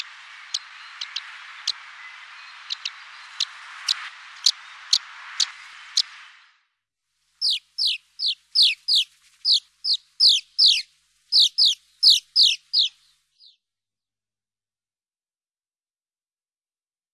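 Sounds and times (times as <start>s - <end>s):
rock martin birds calling: 0.0s - 6.1s, 7.4s - 13.6s.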